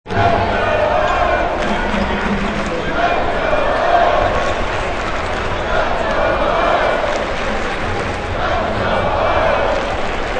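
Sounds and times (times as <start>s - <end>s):
arena crowd noise: 0.1s - 10.3s.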